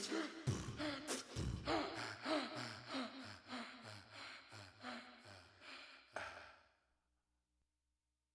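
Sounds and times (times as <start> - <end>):
a cappella singing: 0.0 - 4.1.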